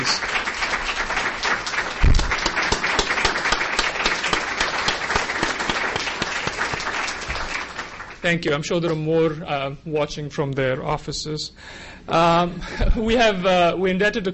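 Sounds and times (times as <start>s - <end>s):
sizable crowd applauding: 0.0s - 8.3s
speech: 8.2s - 14.3s.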